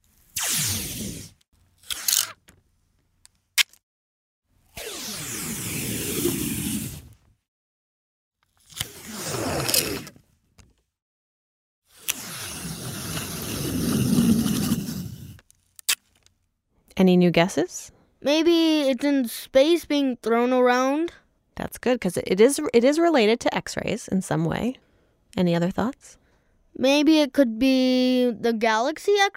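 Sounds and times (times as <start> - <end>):
Scotch tape peeling: 0.2 - 2.6, 4.7 - 7.2, 8.5 - 10.2, 11.9 - 16.3
speech: 17.0 - 26.2, 26.8 - 29.3.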